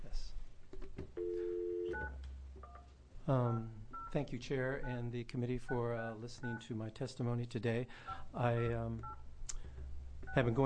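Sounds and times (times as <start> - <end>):
low hum: 0.0 - 10.6
telephone dialing beeps: 1.2 - 2.8
speech: 3.3 - 9.2, 10.3 - 10.6
short higher two-tone keypad beeps: 8.6 - 9.2.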